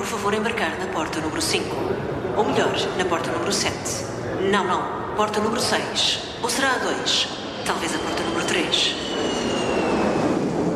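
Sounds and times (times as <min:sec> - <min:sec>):
speech: 0:00.1 - 0:09.2
airplane taking off: 0:06.2 - 0:10.7.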